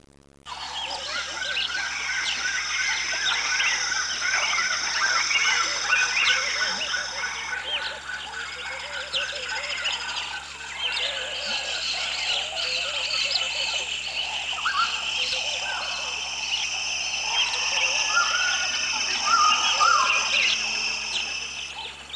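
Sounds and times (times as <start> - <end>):
forest ambience at midday: 0.0 - 22.1.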